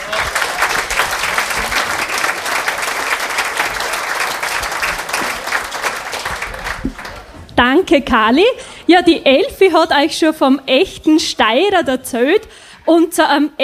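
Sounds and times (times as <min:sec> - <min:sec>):
audience applause: 0:00.0 - 0:07.5
speech: 0:07.6 - 0:13.6.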